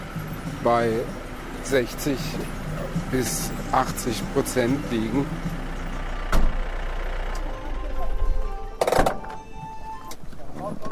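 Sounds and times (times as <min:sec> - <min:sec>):
car engine rumbling as the car pulls off: 0:00.0 - 0:10.8
speech: 0:00.6 - 0:05.6
car door thuds: 0:06.3 - 0:06.6.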